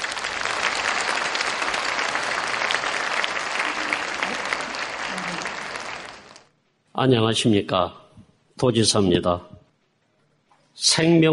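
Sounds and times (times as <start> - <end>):
audience applause welcoming a speaker: 0.0 - 6.5
speech: 7.0 - 8.0, 8.6 - 9.5, 10.8 - 11.3.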